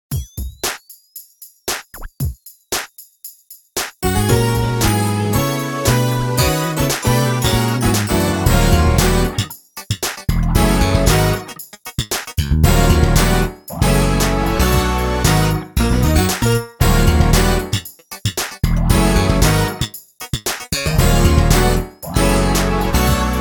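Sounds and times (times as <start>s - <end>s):
funk music without drums: 4.0s - 23.3s.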